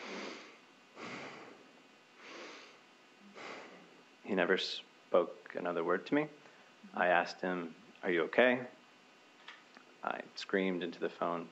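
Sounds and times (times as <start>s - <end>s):
voice imitating heavy breathing: 0.0s - 4.0s
speech: 4.3s - 8.8s, 10.0s - 11.5s.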